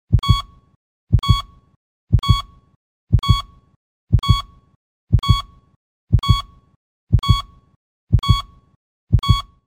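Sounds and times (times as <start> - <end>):
heartbeat: 0.1 - 0.5, 1.1 - 1.5, 2.1 - 2.5, 3.1 - 3.5, 4.1 - 4.5, 5.1 - 6.5, 7.1 - 7.5, 8.1 - 9.5.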